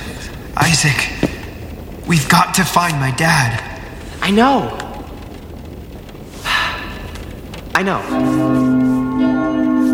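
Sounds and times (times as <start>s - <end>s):
speech: 0.6s - 1.2s, 2.1s - 4.8s, 7.8s - 9.0s
clock bell chiming: 8.1s - 9.9s.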